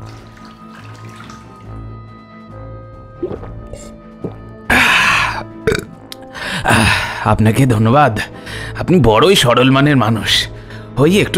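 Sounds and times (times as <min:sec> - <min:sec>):
splashes and drips: 0:00.0 - 0:02.0
water poured from a clay pitcher: 0:00.0 - 0:02.0
speech: 0:03.2 - 0:04.0, 0:06.6 - 0:11.3.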